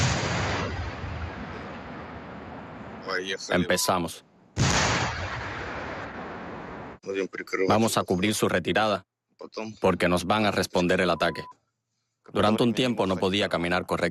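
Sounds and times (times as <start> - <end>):
tank gunfire blasts near trenches: 0.0 - 2.4, 4.6 - 6.3
speech: 3.1 - 4.3, 7.1 - 11.6, 12.2 - 14.1.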